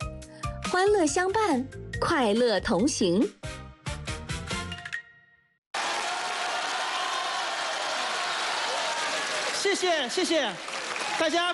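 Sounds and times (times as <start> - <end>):
speech: 0.7 - 3.4, 9.8 - 11.5
audience applause: 5.8 - 11.5.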